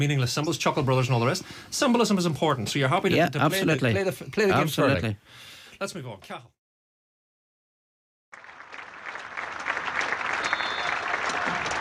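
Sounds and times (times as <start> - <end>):
speech: 0.0 - 6.6
stadium crowd applause: 8.4 - 11.7.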